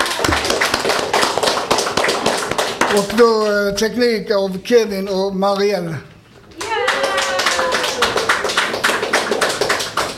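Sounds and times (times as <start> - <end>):
hands clapping: 0.0 - 3.6, 6.6 - 10.1
speech: 2.9 - 6.1.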